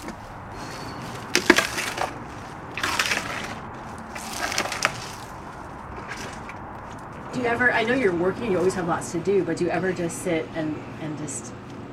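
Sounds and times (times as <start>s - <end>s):
elephant crunching palm fronds: 0.0s - 7.3s
speech: 7.4s - 11.7s.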